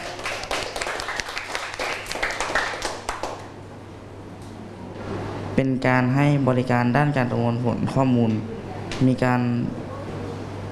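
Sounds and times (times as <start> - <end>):
classroom students clapping for classmates: 0.0 - 3.6
speech: 5.6 - 9.8.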